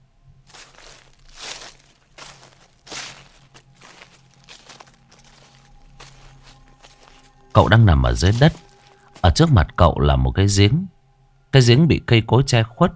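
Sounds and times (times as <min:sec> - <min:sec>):
shoes walking through rustling grass in a dark forest: 0:00.5 - 0:09.7
speech: 0:07.6 - 0:08.6, 0:09.4 - 0:12.9.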